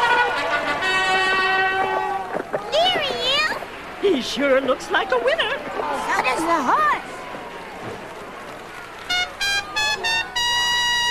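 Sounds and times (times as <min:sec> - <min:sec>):
bugle call: 0:00.0 - 0:02.4, 0:09.1 - 0:11.1
faint noise: 0:00.0 - 0:11.1
speech: 0:04.2 - 0:07.0.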